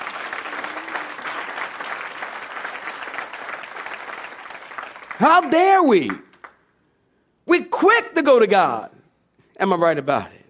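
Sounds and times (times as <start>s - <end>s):
audience clapping hands: 0.0s - 6.7s
speech: 5.2s - 6.2s, 7.5s - 8.9s, 9.6s - 10.4s.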